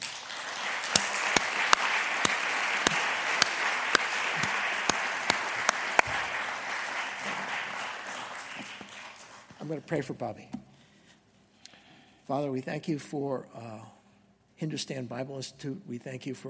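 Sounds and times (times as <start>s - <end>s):
audience applause welcoming a speaker: 0.0s - 9.8s
speech: 9.7s - 10.6s, 12.3s - 14.0s, 14.6s - 16.4s.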